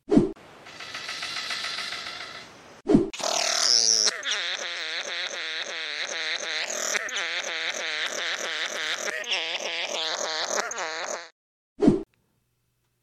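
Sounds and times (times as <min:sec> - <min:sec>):
raspy buzzing bird call: 0:00.7 - 0:02.5, 0:03.2 - 0:11.4.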